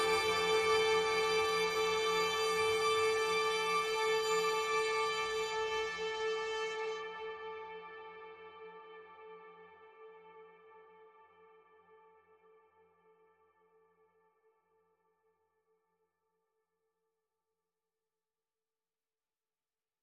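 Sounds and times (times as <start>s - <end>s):
string chords: 0.0s - 9.3s.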